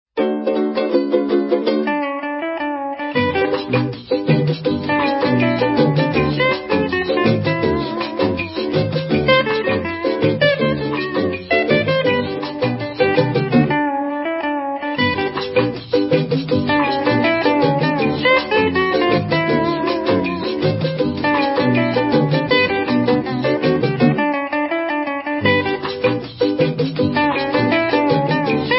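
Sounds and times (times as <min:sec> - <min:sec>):
rumba music: 0:00.2 - 0:28.7.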